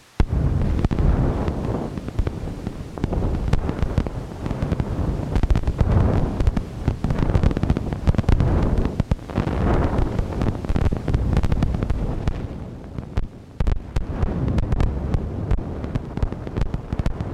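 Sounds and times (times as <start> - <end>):
collage of fireworks: 0.0 - 17.3.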